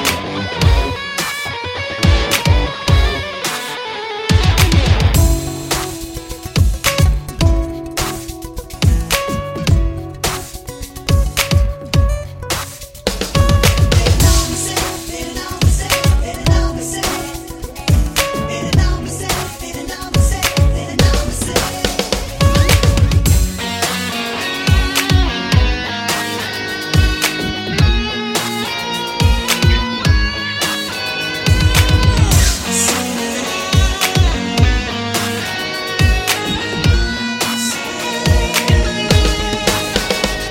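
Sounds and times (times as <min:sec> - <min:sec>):
romantic theme music: 0:00.2 - 0:40.5.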